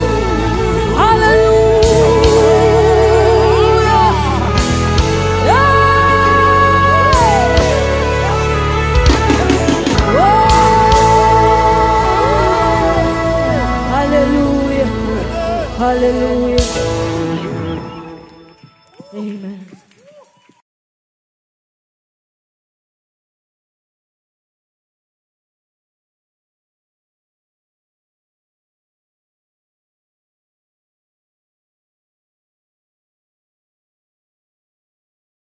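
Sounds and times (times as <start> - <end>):
gospel choir singing: 0.0 - 18.2.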